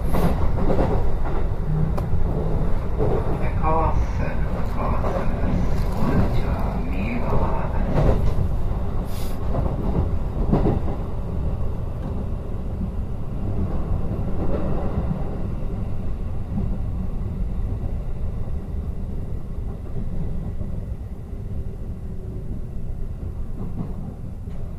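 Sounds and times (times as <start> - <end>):
train running over shaking rattling rails: 0.0 - 24.7.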